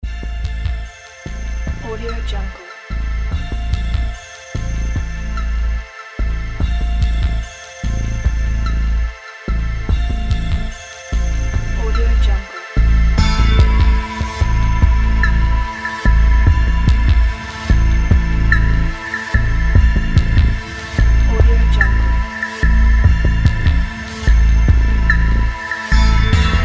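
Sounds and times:
80s suspenseful TV theme music: 0:00.0 - 0:26.6.

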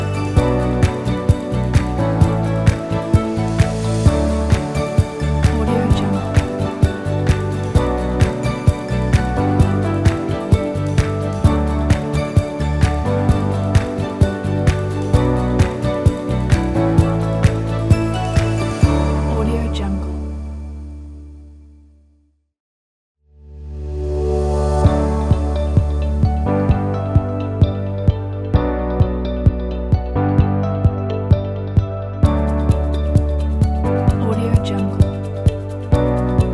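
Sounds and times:
inspiring corporate business music: 0:00.0 - 0:21.5, 0:23.7 - 0:36.5.

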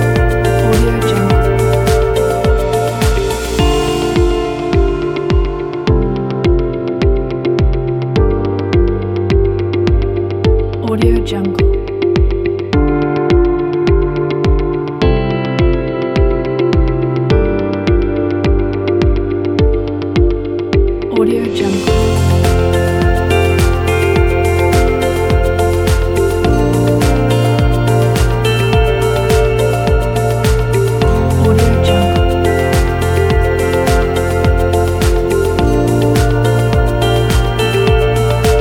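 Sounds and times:
corporate music: 0:00.0 - 0:38.5.

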